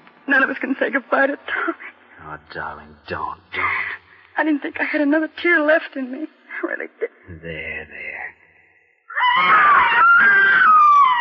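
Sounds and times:
speech: 0.3 - 8.3, 9.4 - 10.8
child screaming: 9.1 - 11.1.

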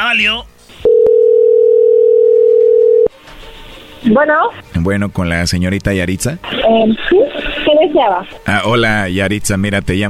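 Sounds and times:
speech: 0.1 - 0.6, 4.0 - 10.0
telephone dial tone: 0.9 - 3.1.

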